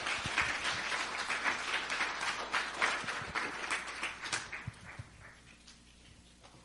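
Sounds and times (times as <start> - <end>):
audience clapping for the cast: 0.0 - 5.7.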